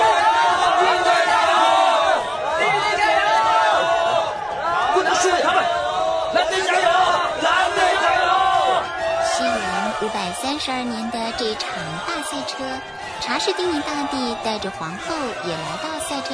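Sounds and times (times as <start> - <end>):
crowd cheering and chanting in unison for the Blue team at a Byzantine chariot race: 0.0 - 16.3
speech: 10.5 - 16.3.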